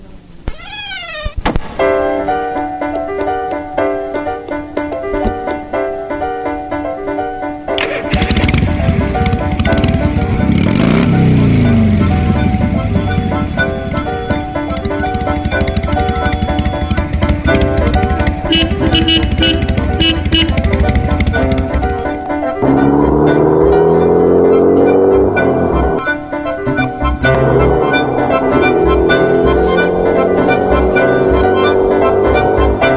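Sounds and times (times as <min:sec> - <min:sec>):
tonal music: 0:01.7 - 0:32.9
motorcycle carrying two riders revving and pulling away: 0:07.8 - 0:26.1, 0:26.7 - 0:32.9.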